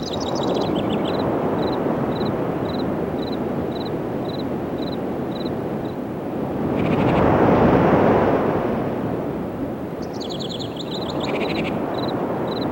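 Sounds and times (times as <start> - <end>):
crickets chirping: 0.0 - 7.2, 9.9 - 12.6
waves: 0.0 - 12.6.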